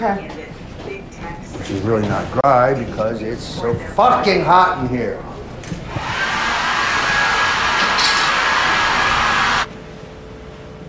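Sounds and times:
speech: 0.0 - 0.4, 1.2 - 5.3
hair dryer blowing out hair: 5.6 - 9.7.

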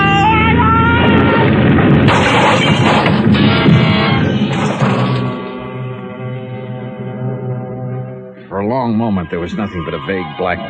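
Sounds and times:
aircraft crash-landing crack-up: 0.6 - 7.3
speech: 8.8 - 10.6.

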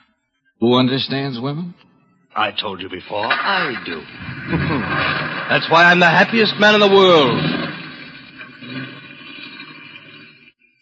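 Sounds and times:
speech: 0.6 - 7.6
laughter: 3.1 - 7.8
car driving off: 3.1 - 10.3.

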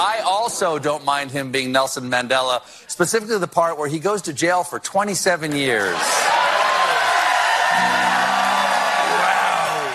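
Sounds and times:
speech: 0.0 - 6.6, 7.8 - 8.3
studio audience applause: 5.6 - 9.9
audience whoops and shouts: 6.3 - 9.9.

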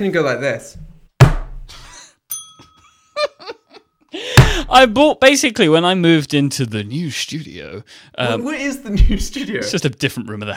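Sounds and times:
speech: 0.0 - 0.9, 4.7 - 10.5
bell ringing: 2.3 - 3.1.

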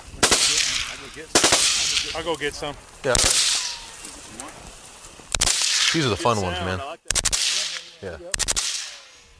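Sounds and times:
illegal automatic weapons AK-47s and M-16s shooting at pumpkins in a field: 0.2 - 2.3, 3.1 - 3.9, 5.3 - 6.1, 7.1 - 9.3
speech: 2.1 - 3.5, 5.9 - 7.0, 8.0 - 8.6.

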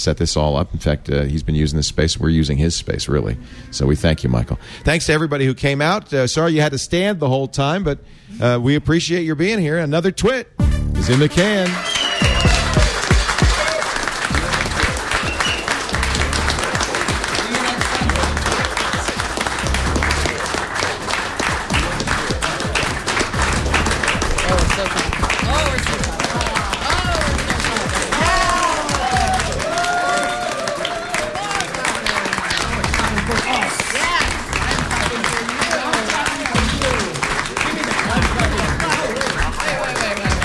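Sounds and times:
speech: 0.0 - 12.0
long audience clapping: 11.0 - 40.4.

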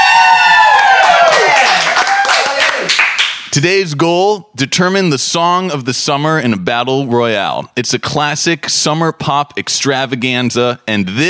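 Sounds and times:
studio audience whoops and shouts: 0.0 - 3.0
studio audience clapping at a live taping: 0.0 - 3.6
speech: 3.6 - 11.2.

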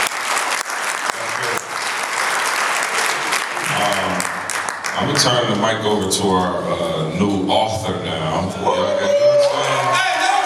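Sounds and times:
audience applause: 0.0 - 5.7, 9.2 - 10.4
speech: 5.2 - 9.2.

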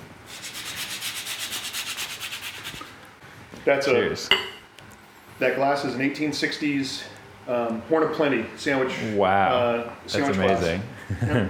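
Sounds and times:
nutmeg being grated: 0.3 - 3.0
speech: 3.6 - 4.6, 5.4 - 11.4.

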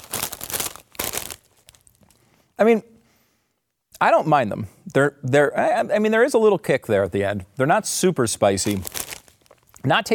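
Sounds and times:
crunching ranch-flavoured potato chips: 0.0 - 2.2, 8.6 - 9.9
speech: 2.6 - 2.9, 4.0 - 9.0, 9.8 - 10.1.

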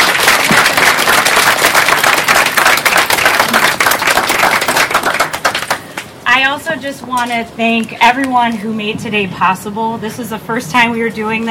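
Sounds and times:
audience applause: 0.0 - 6.0
speech: 6.6 - 11.4.

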